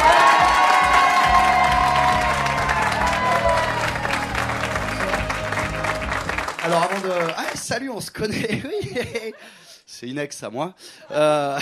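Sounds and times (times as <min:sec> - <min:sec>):
audience applause: 0:00.0 - 0:08.2
laughter: 0:07.4 - 0:09.8
speech: 0:07.8 - 0:11.6.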